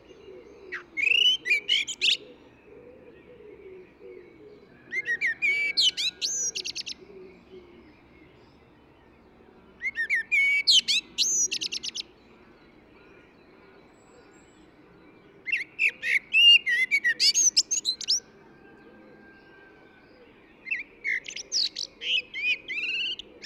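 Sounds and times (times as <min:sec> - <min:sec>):
Eurasian blackbird song: 0:00.0 - 0:23.4.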